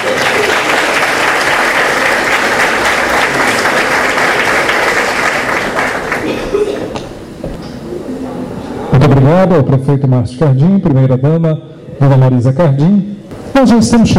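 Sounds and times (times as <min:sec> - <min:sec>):
audience applause: 0:00.0 - 0:06.9
speech: 0:09.3 - 0:14.1.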